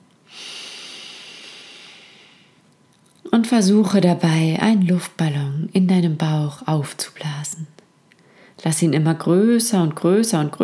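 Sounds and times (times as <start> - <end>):
deep inhale through the nose: 0.3 - 2.6
speech: 3.4 - 7.8, 8.6 - 10.6.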